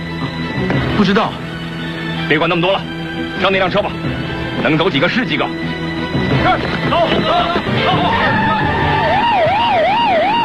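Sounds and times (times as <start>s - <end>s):
speech: 0.7s - 1.5s, 2.3s - 8.9s
several police car sirens wailing: 6.4s - 10.4s.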